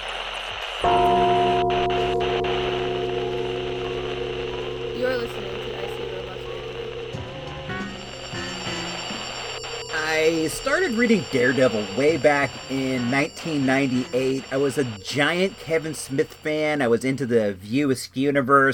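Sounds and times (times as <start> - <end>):
gong being struck: 0.8 - 9.9
speech: 10.5 - 18.7.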